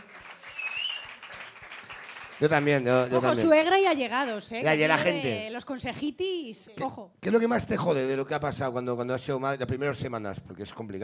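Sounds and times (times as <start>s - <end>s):
applause: 0.0s - 3.8s
speech: 2.4s - 11.0s.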